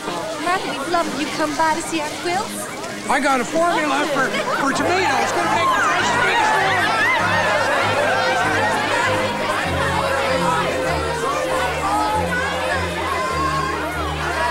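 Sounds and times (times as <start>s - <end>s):
excited crowd chattering: 0.0s - 14.5s
laughter: 0.0s - 14.5s
speech: 0.6s - 6.6s
high shouts: 3.7s - 14.5s.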